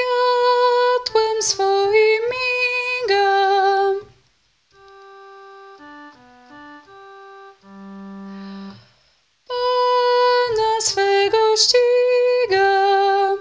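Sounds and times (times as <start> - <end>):
female voices singing: 0.0 - 4.1, 9.5 - 13.4.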